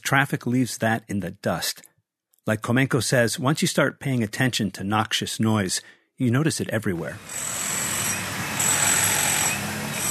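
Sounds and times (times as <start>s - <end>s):
speech: 0.1s - 7.8s
construction site noise: 7.0s - 10.0s.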